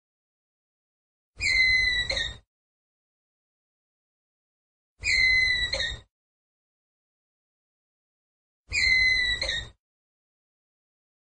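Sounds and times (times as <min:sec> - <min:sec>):
ground squirrel whistled call: 0:01.4 - 0:02.4, 0:05.0 - 0:06.0, 0:08.7 - 0:09.8.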